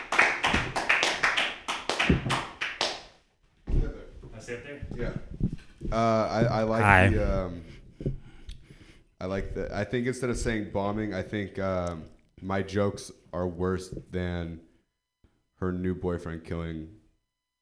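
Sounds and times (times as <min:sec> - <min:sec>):
audience clapping: 0:00.0 - 0:03.1
speech: 0:04.5 - 0:08.1, 0:09.2 - 0:14.7, 0:15.6 - 0:17.0.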